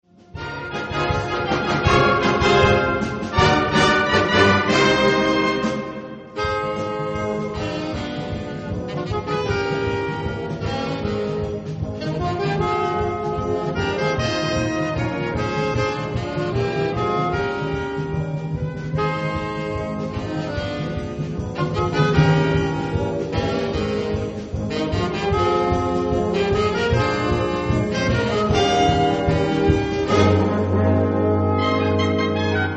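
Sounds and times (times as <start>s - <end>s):
saxophone sonata fourth movement: 0.2s - 32.7s.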